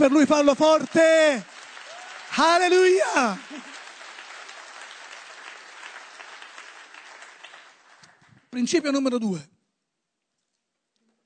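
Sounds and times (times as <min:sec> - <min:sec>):
speech: 0:00.0 - 0:01.5, 0:02.4 - 0:03.7, 0:08.5 - 0:09.5
audience applause: 0:00.0 - 0:08.5.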